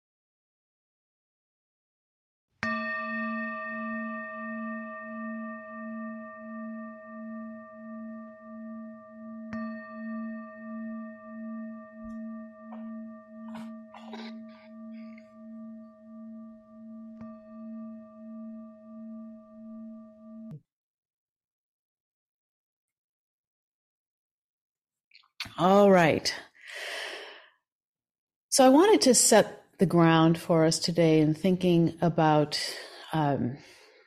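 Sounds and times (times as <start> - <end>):
meditation bell ringing: 2.6 - 20.6
speech: 25.6 - 26.4, 28.6 - 33.7.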